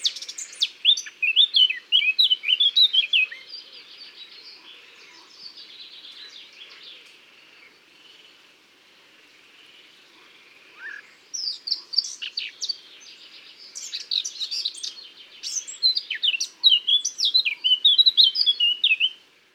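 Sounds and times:
Eurasian blackcap singing: 0.0s - 3.6s, 10.8s - 19.2s.

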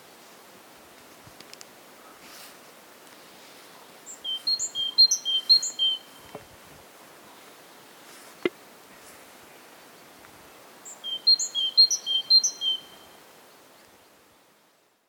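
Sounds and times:
background hiss: 0.0s - 15.0s
great tit calling: 4.0s - 6.2s, 10.8s - 13.0s.

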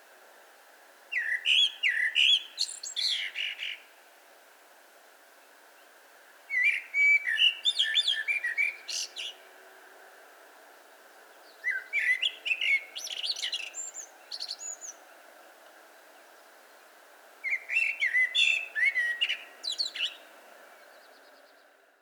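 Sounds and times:
steady hiss: 0.0s - 22.0s
Eurasian blackbird singing: 1.1s - 3.9s, 6.5s - 9.4s, 11.5s - 15.0s, 17.4s - 20.3s.

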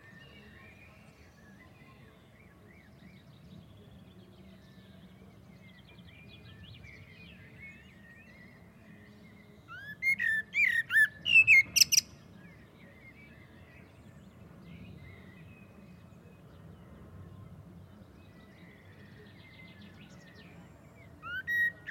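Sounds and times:
Common blackbird Turdus merula whistling and twittering: 9.7s - 12.2s, 21.2s - 21.8s.

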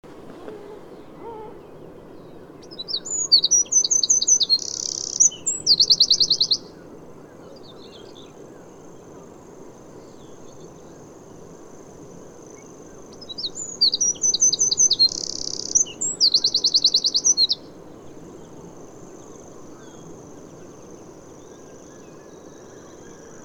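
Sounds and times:
background hiss: 0.0s - 23.4s
Eurasian wren singing: 1.0s - 6.7s, 12.5s - 17.7s.

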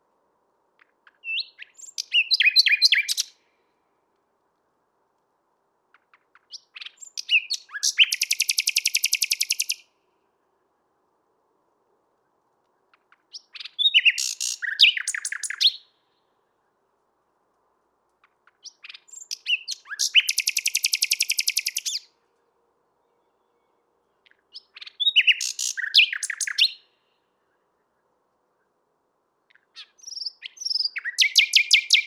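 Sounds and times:
common nightingale singing: 0.8s - 3.6s, 5.9s - 10.8s, 12.2s - 16.8s, 18.2s - 22.2s, 23.0s - 28.8s, 29.4s - 32.0s.

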